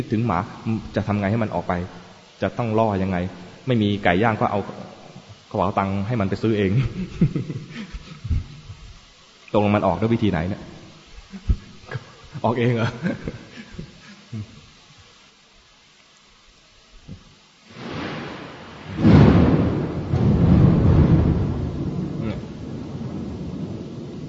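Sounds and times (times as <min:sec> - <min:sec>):
speech: 0:00.0 - 0:04.9, 0:05.5 - 0:08.4, 0:09.5 - 0:10.7, 0:12.4 - 0:14.5
laughter: 0:06.8 - 0:08.7, 0:11.3 - 0:14.6
thunder clap: 0:17.7 - 0:24.2.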